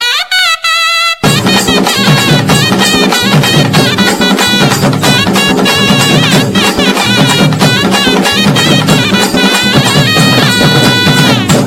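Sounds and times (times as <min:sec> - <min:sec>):
kuthu ringtone: 0:00.0 - 0:11.6.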